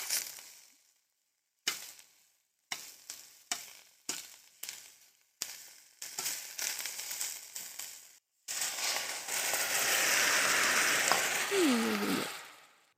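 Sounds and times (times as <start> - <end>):
pan sizzling after deglazing with sauce: 2.7 - 12.8.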